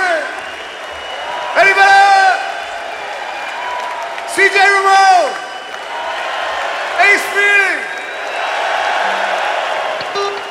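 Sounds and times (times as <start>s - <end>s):
crowd cheering at Madison Square Garden after a rock concert: 0.0s - 10.4s.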